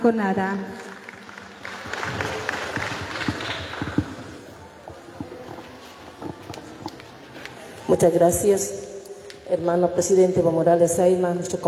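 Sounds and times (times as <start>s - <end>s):
speech: 0.0s - 0.8s, 7.9s - 8.8s, 9.5s - 11.6s
loud audience applause: 0.7s - 5.8s.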